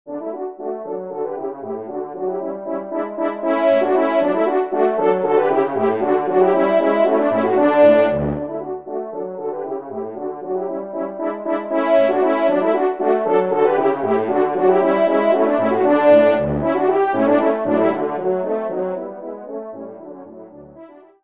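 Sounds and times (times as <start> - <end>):
horn trio: 0.1 - 21.0.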